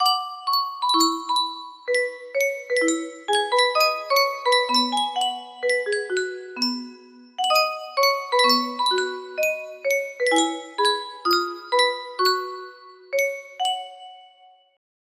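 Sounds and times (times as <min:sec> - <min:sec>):
Yunsheng music box melody: 0:00.0 - 0:14.8.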